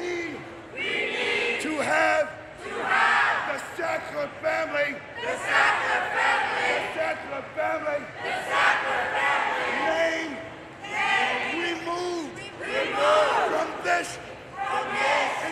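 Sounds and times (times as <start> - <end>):
protesters chanting in a museum: 0.0 - 15.5.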